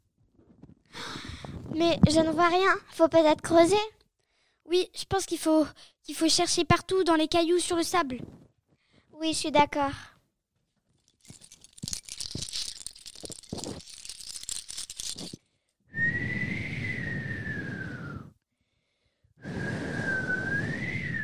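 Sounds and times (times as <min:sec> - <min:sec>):
speech: 0:01.7 - 0:04.0, 0:04.7 - 0:08.4, 0:09.2 - 0:10.1
strong wind on a beach: 0:16.0 - 0:18.3, 0:19.4 - 0:21.2.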